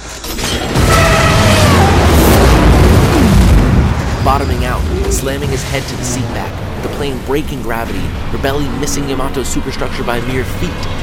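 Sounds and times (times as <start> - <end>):
bombs exploding: 0.6 - 8.6
speech: 5.6 - 11.0.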